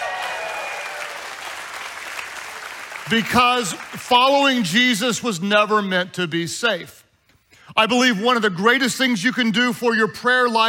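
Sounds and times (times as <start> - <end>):
audience applause: 0.0 - 4.1
speech: 3.1 - 7.0, 7.8 - 10.6.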